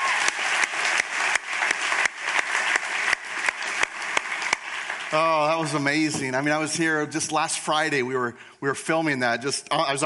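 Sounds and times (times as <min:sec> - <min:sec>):
audience applause: 0:00.0 - 0:06.1
speech: 0:05.1 - 0:10.0.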